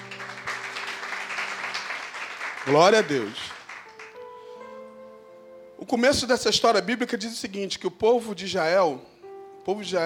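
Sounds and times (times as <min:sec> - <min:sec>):
audience applauding: 0:00.0 - 0:04.3
speech: 0:02.6 - 0:03.5, 0:05.8 - 0:10.0.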